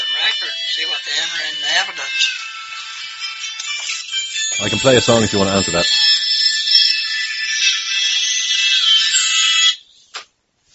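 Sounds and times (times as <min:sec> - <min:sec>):
speech: 0:00.4 - 0:02.5, 0:04.6 - 0:06.1
doorbell ringing: 0:02.9 - 0:09.4.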